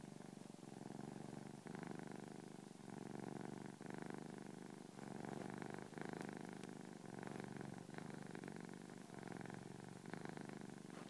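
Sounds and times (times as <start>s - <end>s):
purring: 0.0s - 11.0s.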